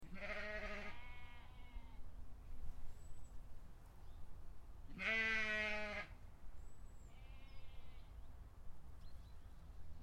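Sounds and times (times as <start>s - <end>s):
sheep bleating in a field: 0.0s - 2.0s, 4.9s - 6.1s.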